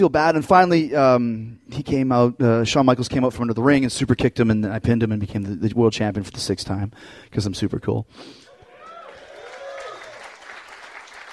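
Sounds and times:
speech: 0.0 - 8.4
audience applause: 8.5 - 11.3.

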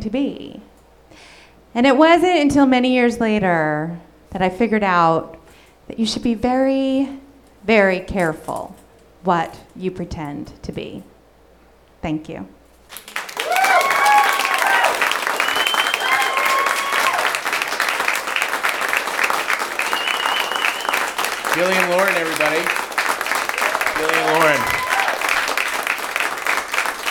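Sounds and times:
speech: 0.0 - 0.6, 1.2 - 11.1, 12.0 - 13.1, 21.6 - 22.8, 24.0 - 24.8
audience applause: 12.9 - 27.0.

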